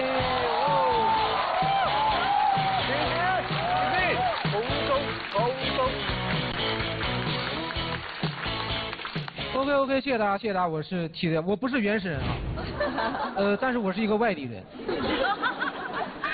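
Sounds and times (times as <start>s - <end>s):
audience applause welcoming a comedian: 0.0s - 9.6s
speech: 9.7s - 15.2s
laughter: 12.6s - 13.6s, 14.7s - 16.3s.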